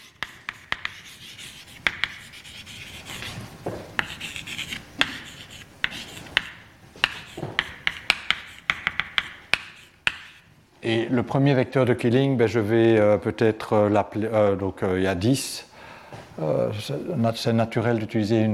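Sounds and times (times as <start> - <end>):
writing on a board: 0.0 - 10.5
sharp taps on a board: 5.8 - 10.3
speech: 10.9 - 15.7, 16.4 - 18.5.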